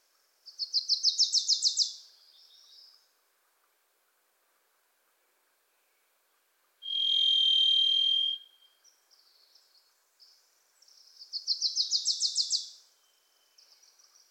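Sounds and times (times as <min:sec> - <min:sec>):
varied thrush buzzy whistled note: 0:06.8 - 0:08.6.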